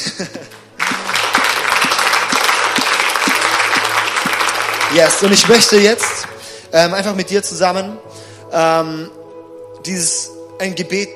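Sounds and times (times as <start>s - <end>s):
speech: 0.2s - 0.5s, 4.9s - 9.2s, 9.8s - 11.1s
audience applause: 0.5s - 6.4s.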